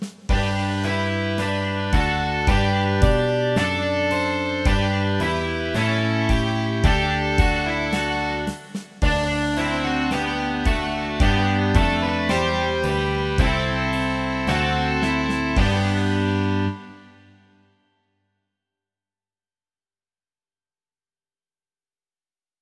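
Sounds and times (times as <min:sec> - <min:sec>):
rock music: 0:00.3 - 0:17.3.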